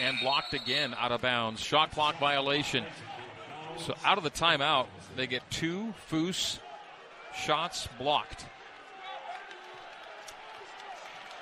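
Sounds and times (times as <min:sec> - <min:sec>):
speech: 0:00.1 - 0:03.2, 0:03.8 - 0:06.6, 0:07.4 - 0:08.6
uneasy applause from basketball arena fans: 0:08.5 - 0:11.4.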